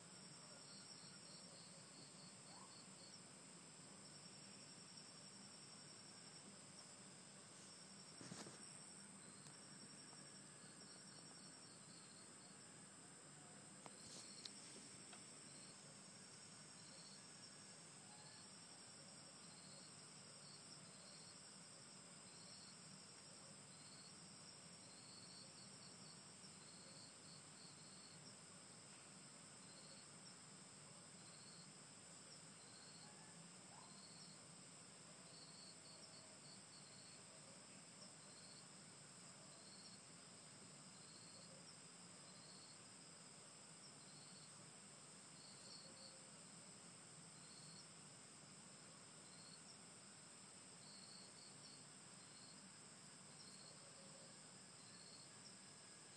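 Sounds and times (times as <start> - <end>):
rainforest ambience: 0.0 - 56.1.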